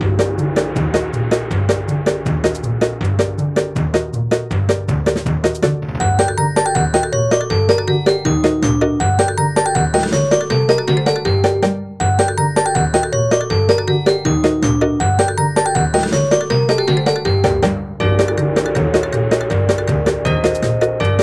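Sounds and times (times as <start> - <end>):
map background music: 0.0 - 21.2.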